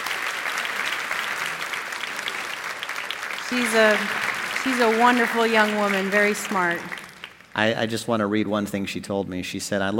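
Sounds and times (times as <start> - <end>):
audience applause: 0.0 - 7.8
speech: 3.5 - 7.0, 7.6 - 9.9.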